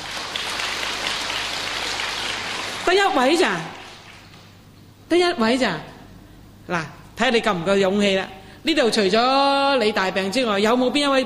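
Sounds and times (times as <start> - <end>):
audience applause: 0.0 - 3.1, 3.7 - 4.4
speech: 2.9 - 3.8, 5.1 - 5.9, 6.7 - 11.2.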